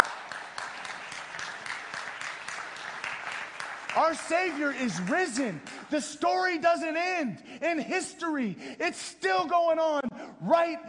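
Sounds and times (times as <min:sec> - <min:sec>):
audience applause: 0:00.0 - 0:06.0
speech: 0:04.0 - 0:10.8.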